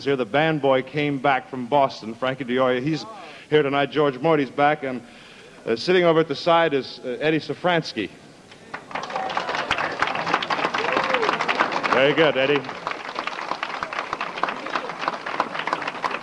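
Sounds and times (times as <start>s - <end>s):
speech: 0.0s - 8.2s, 12.0s - 12.8s
audience applause: 8.6s - 16.2s.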